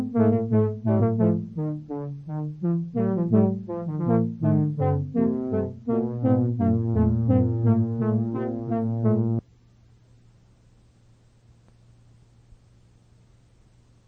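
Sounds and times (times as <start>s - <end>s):
horn playing allegro: 0.0s - 9.4s.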